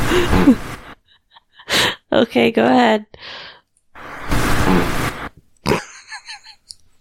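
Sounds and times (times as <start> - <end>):
fart: 0.1 - 0.6, 4.3 - 5.8
speech: 2.2 - 3.4.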